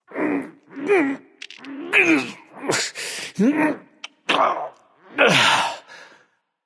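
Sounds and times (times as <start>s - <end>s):
person grunting while lifting: 0.4s - 1.2s, 1.8s - 4.5s, 5.2s - 5.9s.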